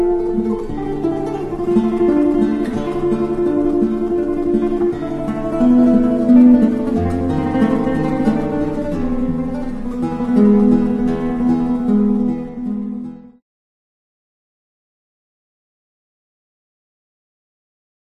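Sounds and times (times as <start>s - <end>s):
guitar piece: 0.0s - 13.4s.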